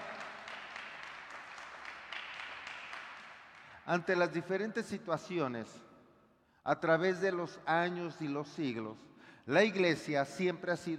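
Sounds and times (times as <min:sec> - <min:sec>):
audience applause: 0:00.0 - 0:03.7
speech: 0:03.9 - 0:05.9, 0:06.6 - 0:10.9.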